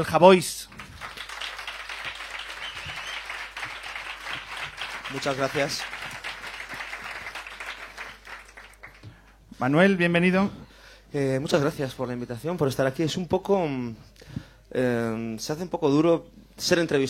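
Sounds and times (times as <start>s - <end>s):
speech: 0.0s - 0.7s, 5.1s - 6.0s, 9.6s - 17.0s
audience applause: 0.7s - 9.2s.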